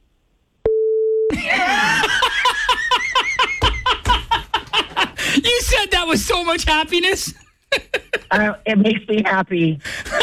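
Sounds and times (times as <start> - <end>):
censor bleep tone: 0.6 - 1.3
laughter: 1.3 - 5.4, 7.7 - 8.5
speech: 6.0 - 10.0.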